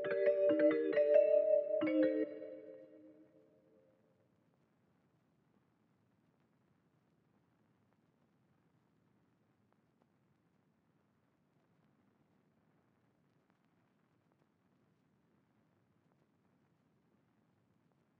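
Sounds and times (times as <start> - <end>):
celeste trap melody loop in G minor at 136 BPM: 0.0 - 3.0.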